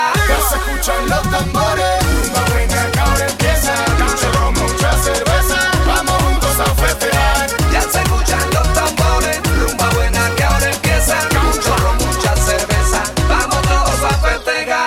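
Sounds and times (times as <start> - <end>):
latin music: 0.0 - 14.8.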